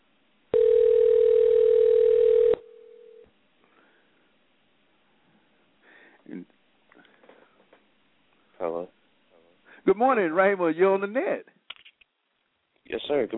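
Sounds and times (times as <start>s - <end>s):
telephone ringing heard down the line: 0.6s - 3.2s
speech: 10.0s - 11.6s, 12.9s - 13.3s.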